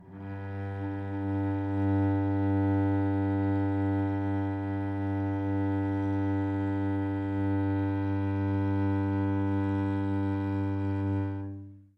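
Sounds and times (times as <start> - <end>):
cello G2 up bow note: 0.0 - 11.9.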